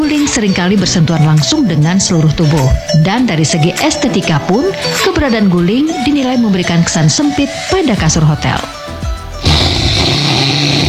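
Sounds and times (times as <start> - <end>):
speech: 0.1 - 8.8
person snoring: 9.4 - 10.8.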